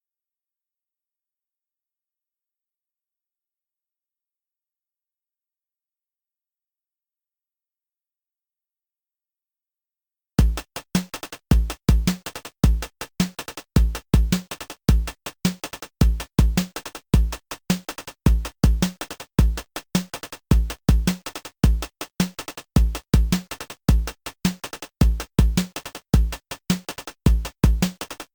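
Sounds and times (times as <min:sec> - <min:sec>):
drums: 0:10.4 - 0:28.3.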